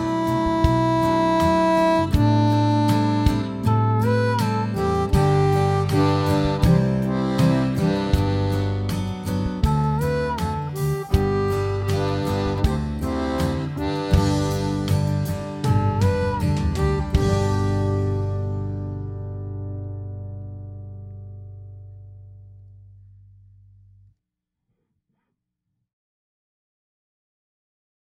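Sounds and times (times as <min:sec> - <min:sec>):
harp: 0:00.0 - 0:20.2.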